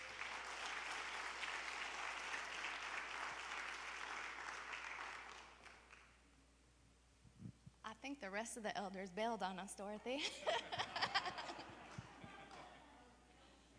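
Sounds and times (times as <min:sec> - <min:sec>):
audience applause welcoming the elders forward: 0:00.0 - 0:06.0
speech: 0:08.0 - 0:10.9
laughter: 0:10.2 - 0:12.6.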